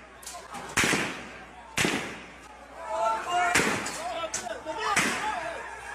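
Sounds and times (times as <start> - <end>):
voices: 0.0 - 5.9
gunfire in the Gaza Strip: 0.7 - 2.4, 3.5 - 4.0.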